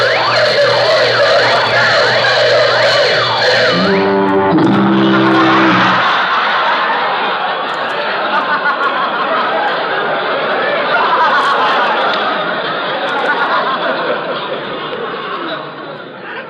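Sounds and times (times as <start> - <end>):
burglar alarm blaring: 0.0 - 6.2
deep buzzer: 0.0 - 6.2
laughter: 3.2 - 16.4.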